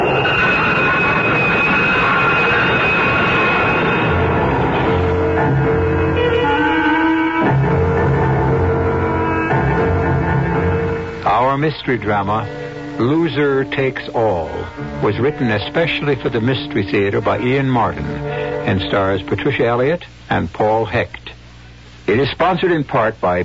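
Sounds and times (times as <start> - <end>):
train rushing in at a platform: 0.0 - 16.4
metallic whining tones: 0.0 - 17.4
speech: 11.6 - 21.2, 22.1 - 23.4.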